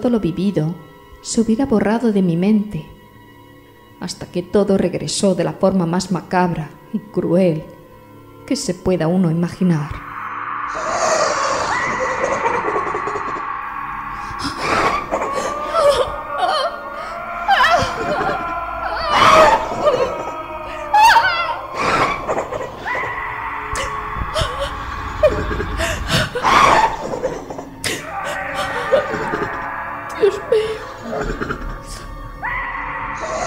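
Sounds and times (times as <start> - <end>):
speech: 0.0 - 3.0, 4.0 - 7.8, 8.5 - 10.1, 10.7 - 11.1
screams echoing off massive walls: 10.0 - 33.4
cackling laughter echoing off massive walls: 11.7 - 13.4, 14.4 - 23.1, 23.8 - 31.8.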